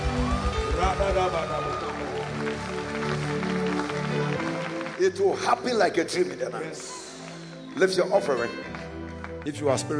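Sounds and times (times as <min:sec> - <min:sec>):
people shouting praise to the Lord: 0:00.0 - 0:02.4
people clapping: 0:00.0 - 0:09.9
speech: 0:00.9 - 0:03.6, 0:04.2 - 0:07.0, 0:07.8 - 0:08.8, 0:09.4 - 0:09.9.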